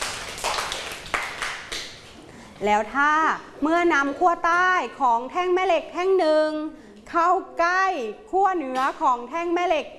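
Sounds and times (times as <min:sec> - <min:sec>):
students clapping in a classroom: 0:00.0 - 0:02.2
speech: 0:02.6 - 0:09.9.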